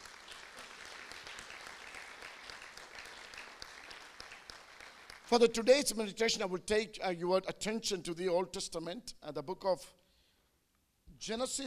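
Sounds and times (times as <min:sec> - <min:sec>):
applause: 0:00.0 - 0:05.9
speech: 0:05.3 - 0:10.0, 0:11.2 - 0:11.6.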